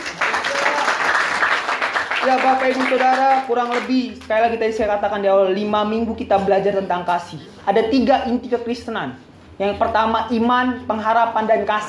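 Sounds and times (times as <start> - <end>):
crowd applause: 0.0 - 3.4
speech: 2.2 - 11.8.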